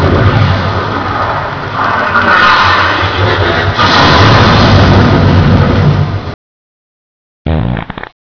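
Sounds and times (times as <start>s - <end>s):
ambience: 0.0s - 6.4s.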